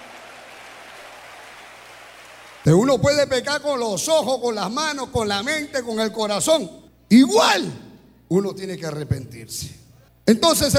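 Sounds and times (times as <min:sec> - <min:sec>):
church congregation clapping hands: 0:00.0 - 0:02.9
speech: 0:02.6 - 0:10.7.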